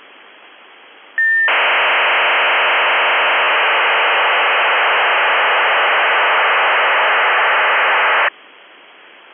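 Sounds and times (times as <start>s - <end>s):
RFSM 2400 baud ARQ600L radio data signal: 1.4s - 8.3s.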